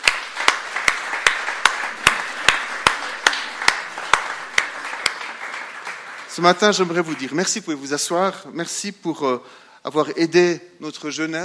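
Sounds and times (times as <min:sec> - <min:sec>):
applause: 0:00.0 - 0:07.8
speech: 0:06.4 - 0:11.4.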